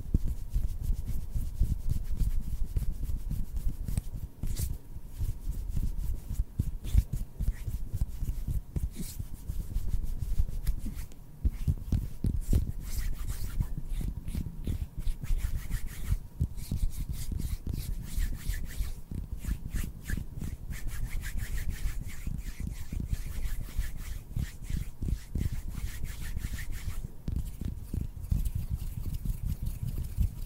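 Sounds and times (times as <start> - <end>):
hands rubbing and brushing together: 0.1 - 30.4.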